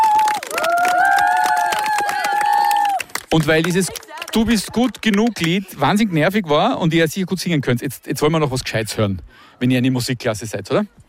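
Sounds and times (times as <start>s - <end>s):
voices cheering: 0.0s - 4.2s
crowd clapping: 0.0s - 5.7s
speech: 3.3s - 11.0s.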